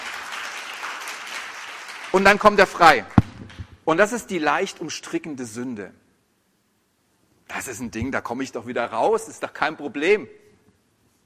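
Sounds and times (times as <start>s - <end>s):
audience applause: 0.0s - 2.6s
speech: 2.2s - 3.1s, 3.9s - 6.0s, 7.5s - 10.4s.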